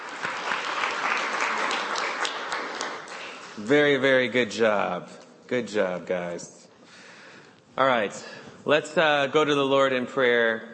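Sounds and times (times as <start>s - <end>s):
round of applause for children: 0.0s - 4.0s
speech: 3.6s - 6.6s, 7.8s - 10.7s.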